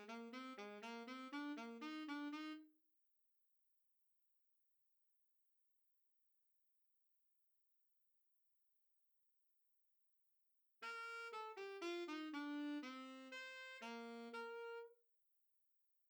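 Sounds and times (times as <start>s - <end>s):
alto saxophone classical piece: 0.0s - 2.7s, 10.8s - 15.0s.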